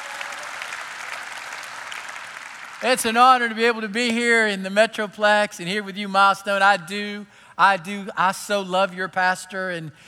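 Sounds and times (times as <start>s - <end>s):
church audience applauding: 0.0s - 3.1s
speech: 2.8s - 10.0s.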